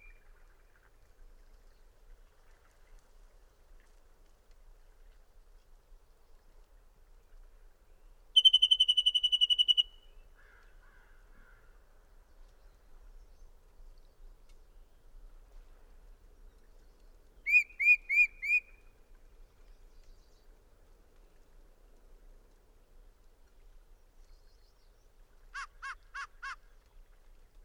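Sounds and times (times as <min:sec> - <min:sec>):
bird trilling: 0:08.4 - 0:09.9.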